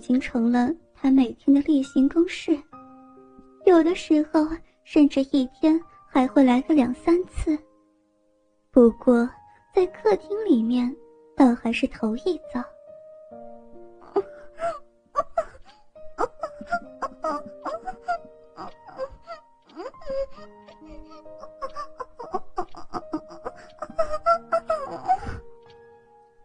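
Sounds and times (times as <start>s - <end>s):
speech: 0.0s - 2.7s, 3.6s - 7.7s, 8.8s - 12.7s
breathy moaning and panting: 14.0s - 25.6s.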